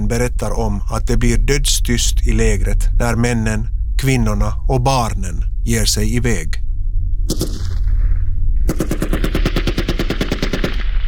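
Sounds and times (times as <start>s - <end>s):
low rumbling background: 0.0s - 11.0s
speech: 0.1s - 6.6s, 7.3s - 7.6s
machine gun fire: 7.3s - 7.8s, 8.7s - 11.0s.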